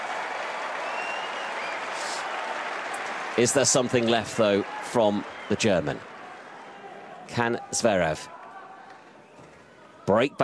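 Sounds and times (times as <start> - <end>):
tennis crowd applauding: 0.0 - 8.9
speech: 3.4 - 6.1, 7.3 - 8.4, 10.1 - 10.4.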